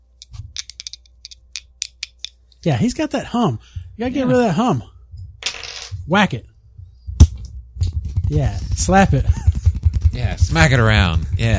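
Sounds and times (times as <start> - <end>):
dice being rolled: 0.2 - 2.4, 5.4 - 6.0
speech: 2.6 - 4.9, 6.1 - 6.5, 8.3 - 9.4, 10.2 - 11.5.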